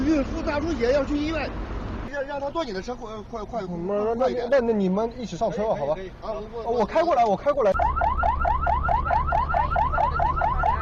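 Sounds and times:
speech: 0:00.2 - 0:08.3
police car siren: 0:07.7 - 0:10.8.

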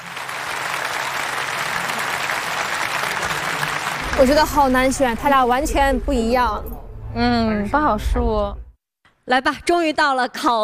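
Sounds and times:
audience applause: 0:00.0 - 0:05.7
speech: 0:04.2 - 0:08.6, 0:09.3 - 0:10.6.

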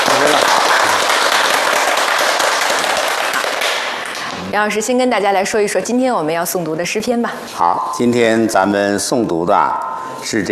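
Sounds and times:
audience applause: 0:00.0 - 0:04.2
speech: 0:04.5 - 0:10.5.

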